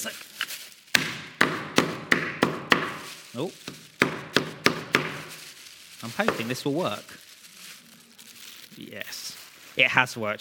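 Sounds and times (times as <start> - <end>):
speech: 0.0 - 0.3, 3.4 - 3.8, 6.0 - 7.2, 8.8 - 10.3
hammer striking: 1.0 - 3.0, 3.7 - 5.2.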